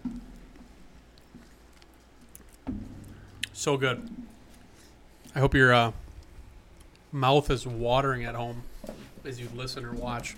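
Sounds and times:
people chewing food: 0.0 - 7.2
speech: 3.6 - 4.2, 5.3 - 6.0, 7.1 - 10.3.

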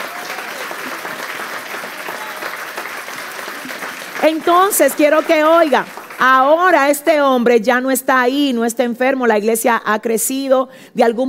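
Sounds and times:
audience applause: 0.0 - 6.5
speech: 4.2 - 11.2.

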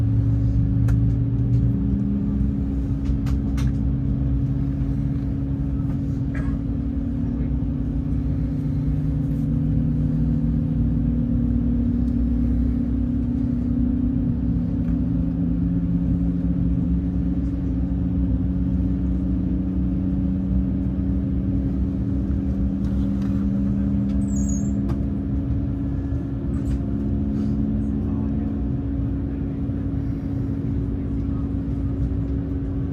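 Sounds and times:
airliner engines droning in flight: 0.0 - 32.9.

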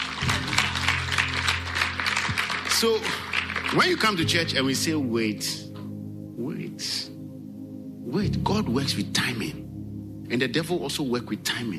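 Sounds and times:
audience clapping hands: 0.0 - 4.2
speech: 2.8 - 5.7, 6.4 - 7.1, 8.1 - 9.6, 10.3 - 11.7.

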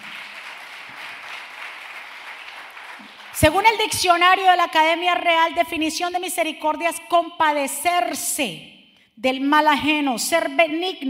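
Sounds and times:
audience applause: 0.0 - 3.4
speech: 3.0 - 11.0.

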